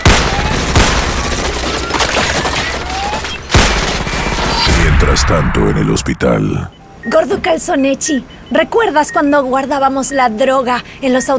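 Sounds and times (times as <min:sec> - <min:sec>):
gunfire bursts: 0:00.0 - 0:05.3
speech: 0:05.0 - 0:11.3.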